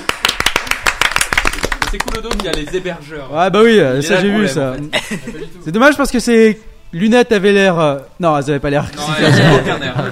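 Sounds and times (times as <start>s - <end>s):
audience handclapping: 0.0s - 2.8s
speech: 1.9s - 10.1s
laughter: 4.8s - 5.6s, 8.8s - 10.1s.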